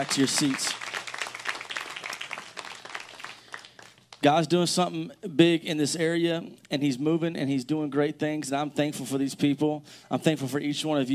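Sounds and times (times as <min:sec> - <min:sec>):
speech: 0:00.0 - 0:00.9, 0:04.2 - 0:11.1
audience hand clapping: 0:00.0 - 0:04.3.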